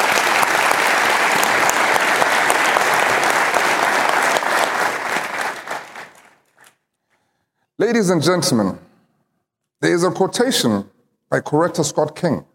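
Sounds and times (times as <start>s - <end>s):
audience applause: 0.0s - 6.7s
speech: 7.8s - 8.9s, 9.8s - 12.5s.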